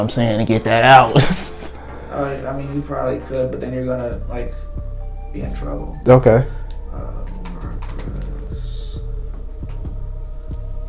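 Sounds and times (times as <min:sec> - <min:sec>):
speech: 0:00.0 - 0:04.7, 0:05.3 - 0:07.4
typing on a computer keyboard: 0:07.2 - 0:08.4.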